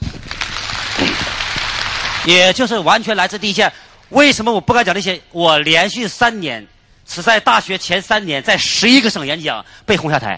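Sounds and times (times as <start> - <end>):
audience applause: 0.3 - 2.3
speech: 2.3 - 10.3.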